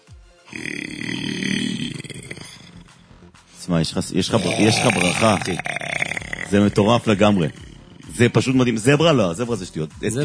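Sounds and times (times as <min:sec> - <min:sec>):
person imitating a lion roar: 0:00.5 - 0:03.0, 0:04.2 - 0:08.9
speech: 0:03.7 - 0:05.8, 0:06.5 - 0:07.6, 0:08.2 - 0:10.2.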